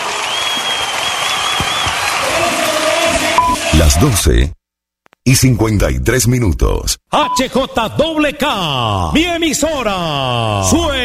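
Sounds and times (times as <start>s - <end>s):
audience applause: 0.0s - 3.8s
audience cheering: 0.0s - 4.3s
speech: 4.0s - 4.6s, 5.3s - 11.0s.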